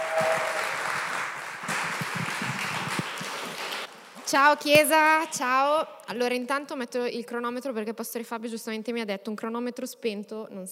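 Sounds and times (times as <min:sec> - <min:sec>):
crowd applauding: 0:00.0 - 0:03.9
speech: 0:04.3 - 0:10.7.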